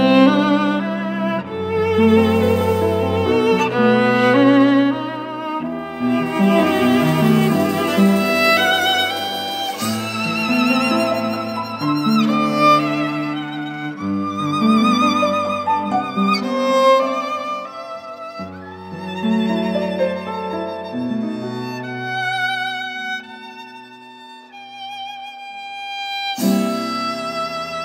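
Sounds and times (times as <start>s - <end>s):
cello: 0.0s - 27.8s
piano: 0.0s - 27.8s
violin: 0.0s - 27.8s
jazz drum: 5.8s - 12.8s.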